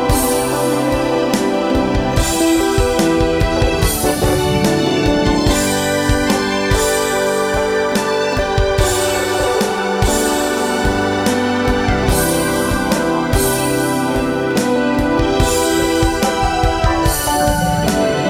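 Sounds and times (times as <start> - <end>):
ambient keyboards: 0.0 - 18.2.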